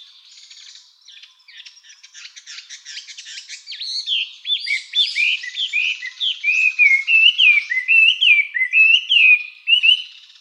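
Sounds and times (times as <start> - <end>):
Chinese hwamei song of whistled phrases: 0.0 - 10.3.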